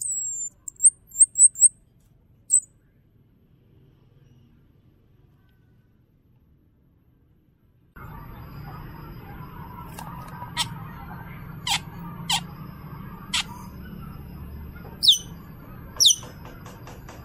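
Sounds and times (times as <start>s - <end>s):
bird singing: 0.0s - 1.7s, 8.0s - 16.6s.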